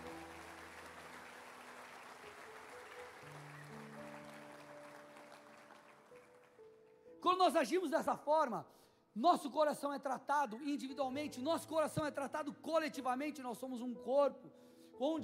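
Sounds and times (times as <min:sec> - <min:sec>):
audience clapping: 0:00.0 - 0:07.1
speech: 0:07.3 - 0:15.2.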